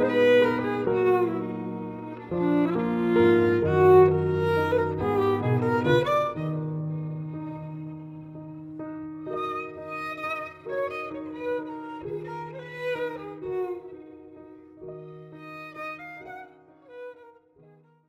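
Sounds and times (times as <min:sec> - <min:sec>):
piano: 0:00.0 - 0:18.0
violin: 0:00.0 - 0:18.0.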